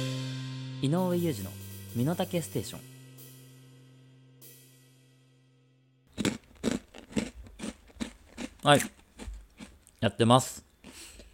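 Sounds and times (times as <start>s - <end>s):
speech: 0.8s - 2.9s, 8.7s - 9.0s, 10.0s - 10.7s
low hum: 1.4s - 6.0s
crunching a zarame sugar-coated rice cracker: 6.1s - 9.9s.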